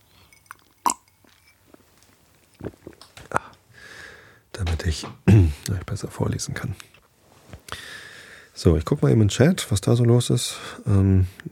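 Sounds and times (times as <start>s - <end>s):
person drinking a sip of water: 0.2s - 1.9s
speech: 2.6s - 3.1s, 4.6s - 7.0s, 8.6s - 11.4s.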